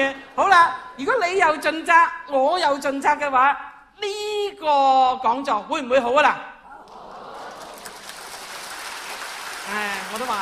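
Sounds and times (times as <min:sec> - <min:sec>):
speech: 0:00.0 - 0:06.5, 0:09.7 - 0:10.4
audience applause: 0:06.9 - 0:10.4.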